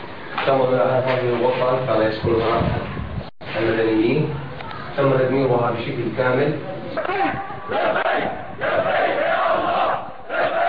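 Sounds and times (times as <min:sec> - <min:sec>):
speech: 0:00.4 - 0:03.0, 0:03.6 - 0:04.4, 0:05.0 - 0:08.9
crowd shouting: 0:07.0 - 0:10.6
street demonstration crowd chanting: 0:07.6 - 0:10.6.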